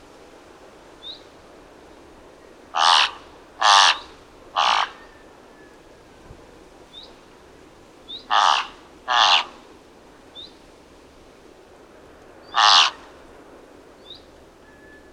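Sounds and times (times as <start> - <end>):
thick-billed raven croaking caws: 2.7 - 5.0, 8.3 - 9.6, 12.5 - 13.1.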